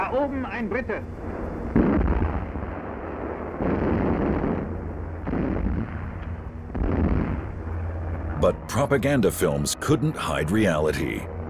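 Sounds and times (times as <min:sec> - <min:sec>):
speech: 0:00.1 - 0:01.9, 0:08.4 - 0:11.3
anti-aircraft guns firing at enemy aircraft in a wartime film: 0:01.7 - 0:08.3.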